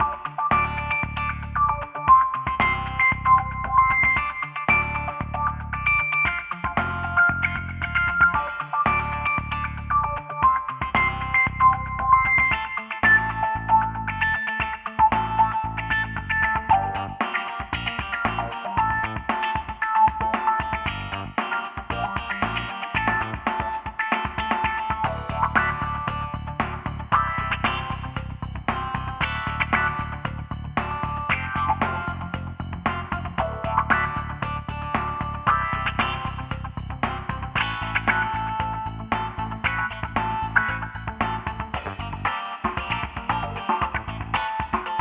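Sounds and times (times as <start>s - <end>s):
funky lo-fi urban city music: 0.0s - 44.9s.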